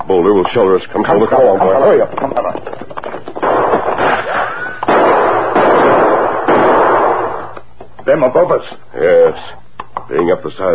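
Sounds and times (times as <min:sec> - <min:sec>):
speech: 0:00.1 - 0:02.7, 0:08.1 - 0:10.7
gunshots in a canyon with long rumbling echo: 0:03.4 - 0:07.6.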